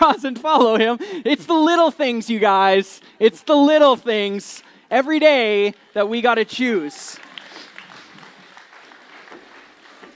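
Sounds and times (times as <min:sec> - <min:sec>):
speech: 0:00.1 - 0:07.3
audience clapping: 0:07.0 - 0:10.1.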